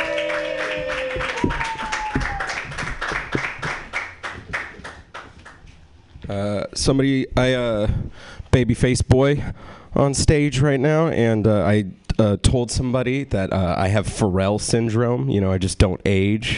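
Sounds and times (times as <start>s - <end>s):
audience applauding a comedian at a comedy show: 0.0s - 5.6s
speech: 6.3s - 16.5s.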